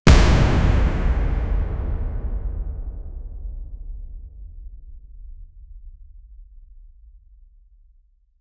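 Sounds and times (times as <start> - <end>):
cinematic impact: 0.1 - 4.5.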